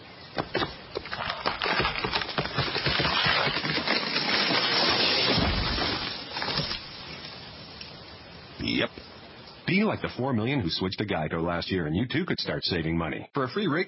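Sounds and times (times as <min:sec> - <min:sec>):
tree falling in a forest: 0:00.4 - 0:07.4
speech: 0:09.9 - 0:13.8.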